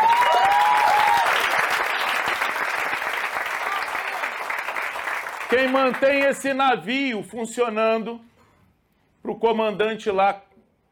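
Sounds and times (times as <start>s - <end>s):
faint audience whoops and cheers: 0.0s - 1.5s
audience applause: 0.0s - 6.5s
speech: 5.5s - 8.3s, 9.3s - 10.5s.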